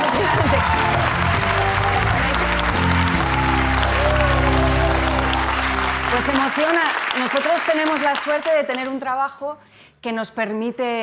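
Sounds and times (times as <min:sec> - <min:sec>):
audience applause: 0:00.0 - 0:08.8
speech: 0:06.6 - 0:11.0.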